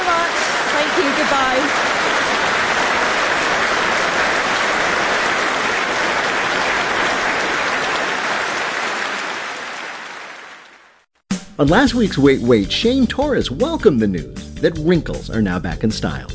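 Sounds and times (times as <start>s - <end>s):
audience applause for the show's engineers: 0.0s - 11.0s
speech: 1.0s - 1.8s, 11.6s - 16.3s.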